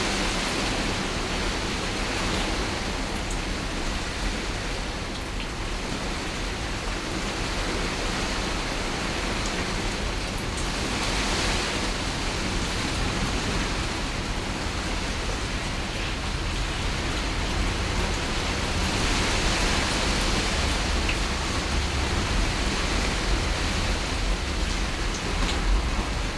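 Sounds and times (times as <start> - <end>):
heavy rain on a greenhouse recorded inside the greenhouse: 0.0 - 26.3.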